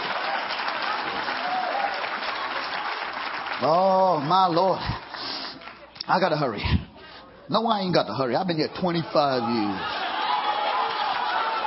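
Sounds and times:
audience hand clapping: 0.0s - 6.0s, 10.0s - 11.6s
speech: 3.6s - 5.0s, 6.1s - 6.8s, 7.5s - 10.0s.

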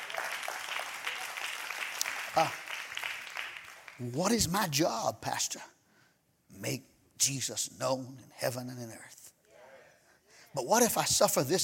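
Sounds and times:
audience clapping: 0.0s - 4.4s
speech: 2.4s - 2.6s, 4.0s - 5.8s, 6.5s - 9.2s, 10.6s - 11.6s.

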